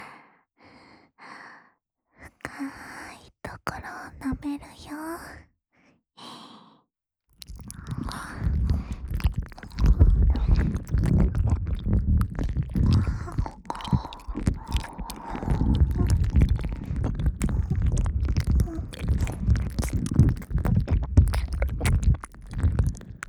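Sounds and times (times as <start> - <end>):
ASMR ear licking in the right ear: 7.4 - 23.2.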